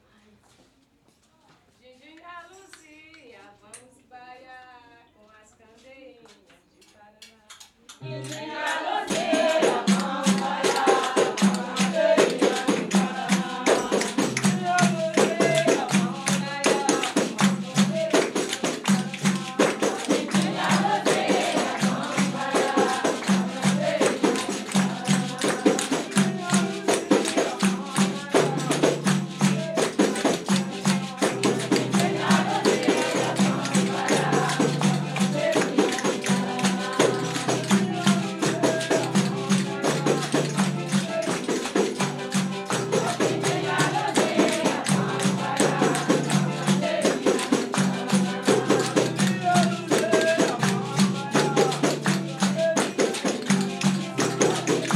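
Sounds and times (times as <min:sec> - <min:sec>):
baiao music: 0:08.0 - 0:54.9.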